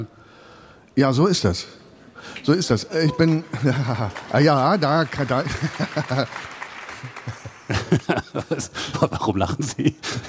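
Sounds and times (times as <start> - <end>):
speech: 1.0 - 7.4, 8.1 - 10.2
audience clapping: 2.3 - 9.0
laughter: 3.1 - 10.2.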